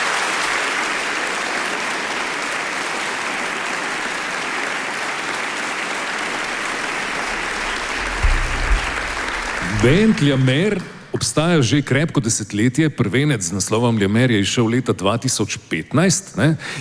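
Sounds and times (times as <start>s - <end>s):
audience applause: 0.0s - 12.0s
low thumps: 6.4s - 11.9s
speech: 9.8s - 16.8s.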